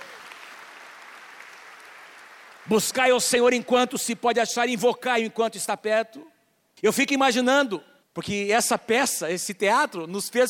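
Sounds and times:
audience applauding: 0:00.0 - 0:03.0
speech: 0:02.6 - 0:10.4.

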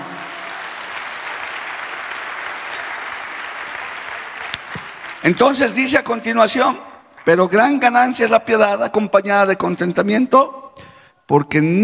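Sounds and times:
audience applause: 0:00.0 - 0:06.3
speech: 0:05.2 - 0:10.6, 0:11.3 - 0:11.8.

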